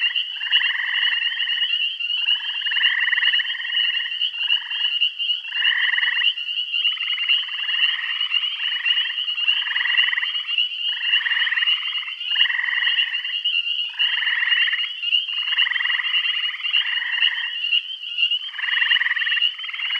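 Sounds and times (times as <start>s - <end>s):
frog chorus of overlapping pulsed buzzy trills in Bath County: 0.0s - 19.9s.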